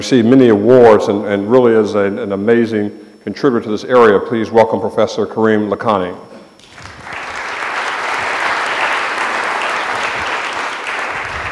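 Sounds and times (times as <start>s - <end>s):
speech: 0.0s - 6.3s
audience applause: 6.6s - 11.5s.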